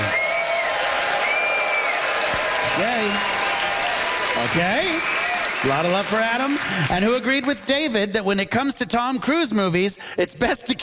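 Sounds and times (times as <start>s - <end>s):
audience applause as a vote at a live comedy debate: 0.0s - 8.0s
speech: 4.4s - 10.8s.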